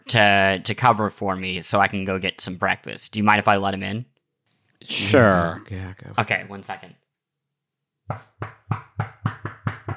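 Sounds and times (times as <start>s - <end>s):
speech: 0.1s - 4.1s, 4.8s - 7.0s, 8.1s - 9.4s
knocking on a door: 8.1s - 9.9s.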